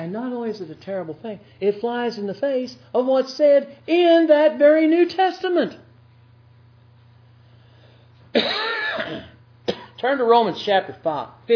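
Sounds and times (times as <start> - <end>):
speech: 0.0 - 5.8, 10.0 - 11.5
harsh cough from a speaker reading scripture aloud: 8.4 - 10.0.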